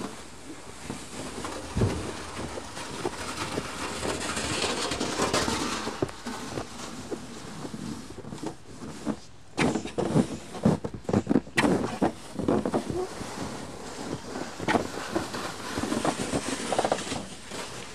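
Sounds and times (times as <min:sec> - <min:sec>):
snow being cleared away: 0:00.0 - 0:17.9
sharp thuds: 0:01.5 - 0:03.2.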